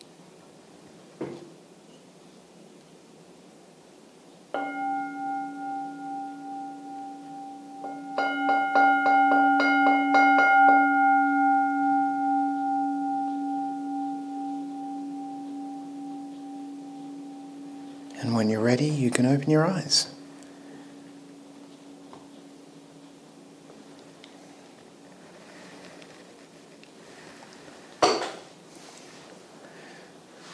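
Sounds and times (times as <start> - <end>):
gong being rung: 4.6 - 23.9
speech: 18.6 - 20.2.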